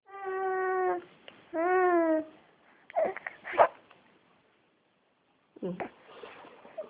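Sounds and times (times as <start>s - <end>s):
hungry baby boy: 0.1s - 3.9s.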